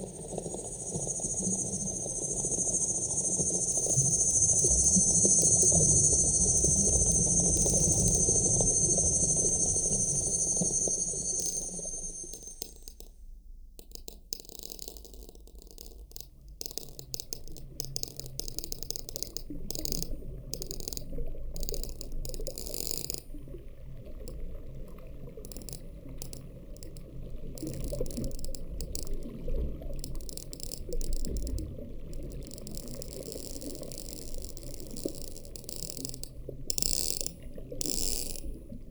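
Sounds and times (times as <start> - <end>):
cicadas: 0.0 - 12.8, 27.6 - 38.6
water: 0.0 - 13.1, 13.8 - 38.8.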